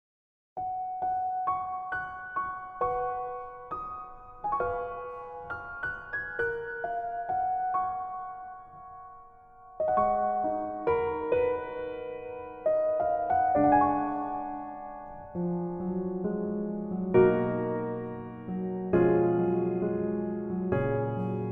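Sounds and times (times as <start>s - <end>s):
piano version melody backing track: 0.6s - 21.5s.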